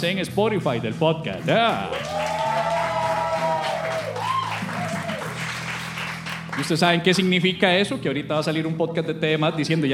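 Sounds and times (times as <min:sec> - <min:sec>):
speech: 0:00.0 - 0:02.4, 0:06.6 - 0:09.9
live podcast audience clapping: 0:01.3 - 0:07.3
live podcast audience cheering and whooping: 0:01.9 - 0:05.7.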